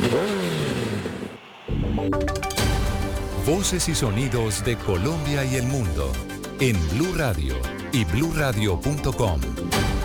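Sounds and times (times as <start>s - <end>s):
motorcycle engine revving: 0.0s - 1.8s
speech: 0.1s - 0.5s, 2.0s - 2.4s, 3.4s - 9.9s.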